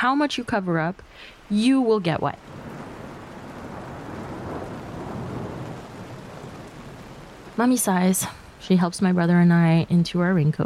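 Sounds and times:
speech: 0.0 - 2.7, 7.6 - 10.6
heavy rain: 0.0 - 10.6
thunder rumbling: 1.4 - 10.6.

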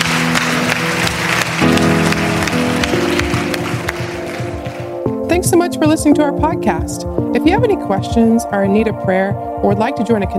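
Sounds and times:
audience applause: 0.0 - 5.1
speech: 5.4 - 10.3.

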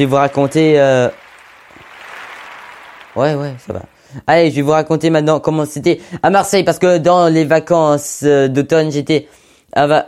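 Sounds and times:
speech: 0.0 - 1.2, 3.2 - 10.0
applause: 0.0 - 4.3.

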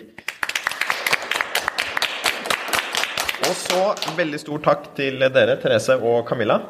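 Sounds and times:
audience applauding: 0.2 - 4.4
speech: 3.5 - 6.6.

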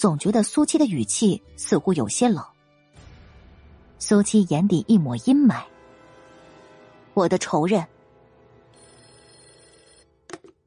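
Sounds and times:
speech: 0.0 - 2.5, 4.0 - 5.7, 7.2 - 8.0
telephone ringing with an electronic trill: 8.7 - 10.5.

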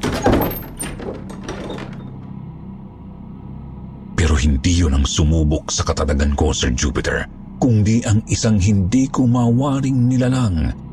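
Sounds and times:
gate creaking loudly as it opens: 0.0 - 2.4
speech: 4.4 - 10.8.

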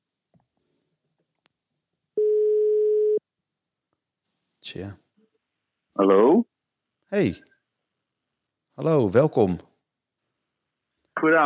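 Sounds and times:
single steady mid-pitched telephone tone beep: 2.2 - 3.2
speech: 4.7 - 5.0, 6.0 - 6.5, 7.1 - 7.5, 8.8 - 9.7, 11.2 - 11.4.

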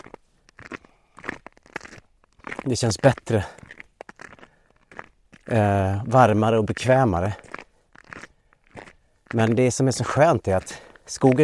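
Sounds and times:
footsteps crunching on snowy forest path: 0.0 - 11.4
speech: 2.6 - 3.6, 5.5 - 7.5, 9.3 - 11.4.

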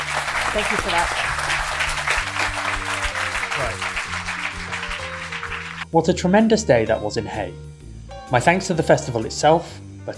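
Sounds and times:
audience applause: 0.0 - 5.8
speech: 0.5 - 1.2, 3.6 - 4.1, 5.9 - 7.7, 8.3 - 10.1.

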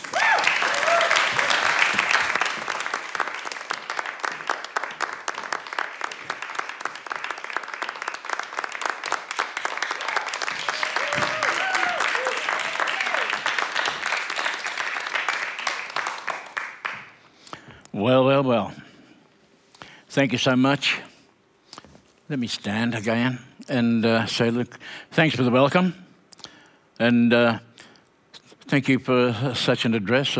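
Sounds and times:
audience applause welcoming a speaker to the stage: 0.0 - 17.2
speech: 18.1 - 18.8, 20.2 - 21.1, 22.3 - 26.0, 27.0 - 27.7, 28.7 - 30.3.

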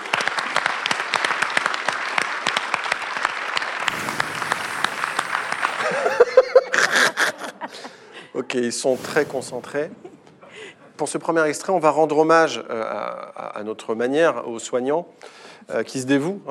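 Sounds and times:
audience applause: 0.0 - 7.3
laughter: 5.5 - 8.3
speech: 8.5 - 10.1, 11.0 - 16.4.

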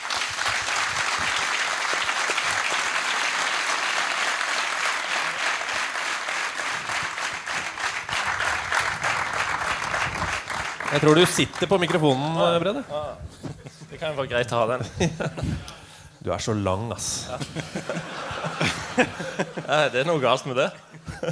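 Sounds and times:
studio audience applause: 0.0 - 12.8
speech: 10.9 - 21.3
laughter: 11.0 - 15.9, 17.2 - 21.3.

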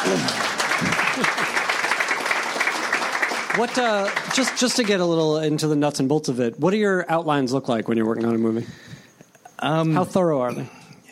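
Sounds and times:
audience applause: 0.0 - 5.5
speech: 0.1 - 0.4, 3.6 - 8.9, 9.6 - 10.8.

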